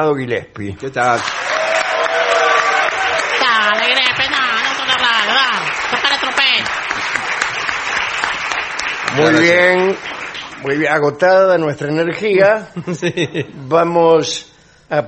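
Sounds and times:
speech: 0:00.0 - 0:01.5, 0:09.1 - 0:15.0
crowd cheering and clapping: 0:01.1 - 0:10.9
excited shouts and whoops: 0:01.3 - 0:03.9
laughter: 0:12.7 - 0:13.7.

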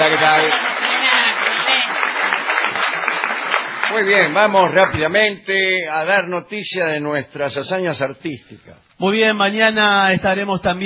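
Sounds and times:
audience ovation applause: 0:00.0 - 0:05.1
speech: 0:04.0 - 0:10.8.

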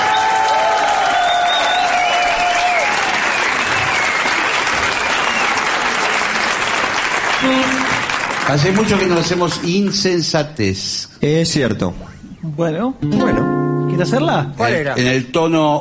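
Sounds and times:
audience applause: 0:00.0 - 0:10.2
speech: 0:08.5 - 0:15.7.

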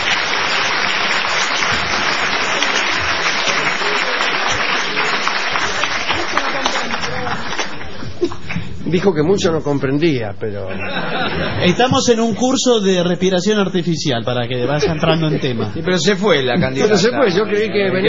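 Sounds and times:
laughter: 0:00.0 - 0:08.7, 0:10.6 - 0:12.5, 0:14.6 - 0:18.0
audience applause: 0:00.0 - 0:08.8
speech: 0:08.9 - 0:18.0.

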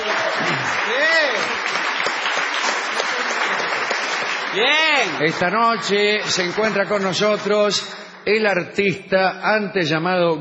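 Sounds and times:
audience applause ovation: 0:00.0 - 0:08.3
speech: 0:04.6 - 0:10.3.

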